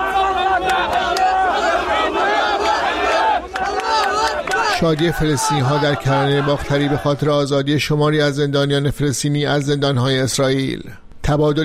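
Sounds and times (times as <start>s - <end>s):
crowd of Israelis cheering and shouting at the release of hostages: 0.0s - 7.2s
speech: 4.8s - 11.6s.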